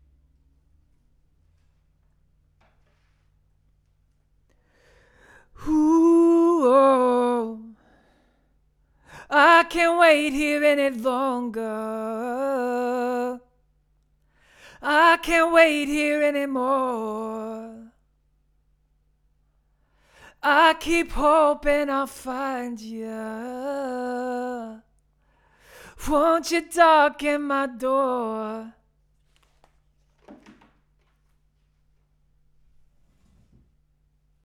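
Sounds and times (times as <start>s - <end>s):
vocals: 4.8s - 13.7s, 14.4s - 18.2s, 20.0s - 29.0s.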